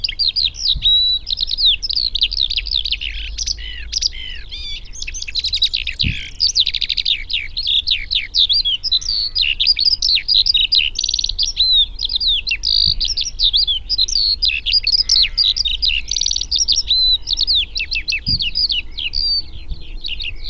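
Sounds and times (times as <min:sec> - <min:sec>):
Eurasian skylark singing: 0:00.0 - 0:20.4
faint low thumps: 0:06.0 - 0:06.3, 0:18.2 - 0:18.8.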